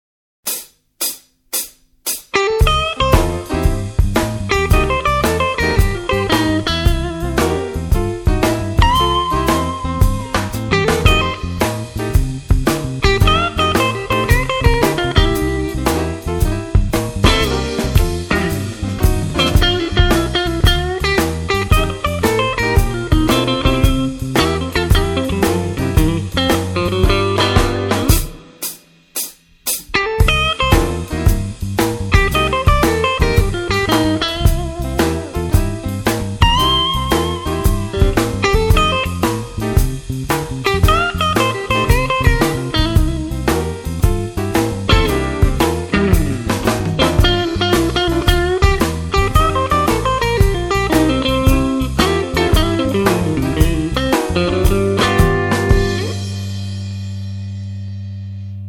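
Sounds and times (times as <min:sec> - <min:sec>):
blues jazz music: 0:00.5 - 0:58.6.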